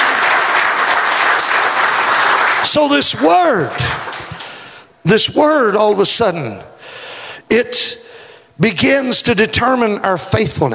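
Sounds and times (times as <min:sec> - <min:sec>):
audience applause: 0:00.0 - 0:04.7
speech: 0:02.7 - 0:04.1, 0:05.0 - 0:06.7, 0:07.5 - 0:08.0, 0:08.6 - 0:10.7.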